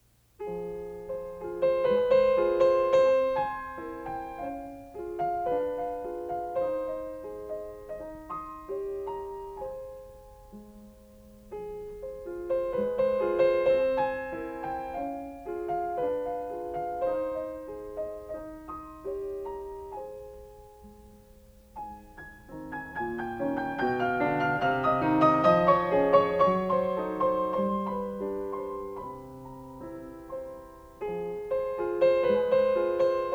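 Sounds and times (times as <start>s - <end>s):
piano piece: 0.0s - 33.3s.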